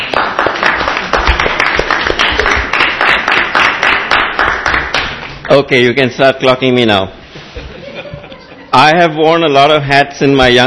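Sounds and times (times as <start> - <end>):
audience applause: 0.0 - 5.3
speech: 5.5 - 7.2, 8.7 - 10.6
laughter: 7.4 - 8.8.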